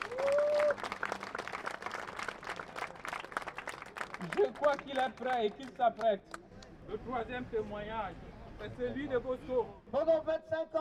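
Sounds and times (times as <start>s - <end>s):
audience applause: 0.0s - 4.8s
speech: 4.2s - 10.7s.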